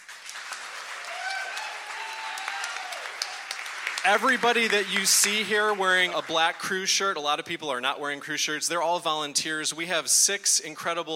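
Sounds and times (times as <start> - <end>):
crowd applauding the crew: 0.0 - 7.1
speech: 4.0 - 11.1.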